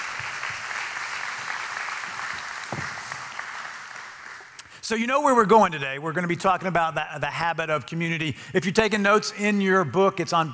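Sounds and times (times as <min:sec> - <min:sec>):
large crowd applause: 0:00.0 - 0:04.6
speech: 0:04.9 - 0:10.5.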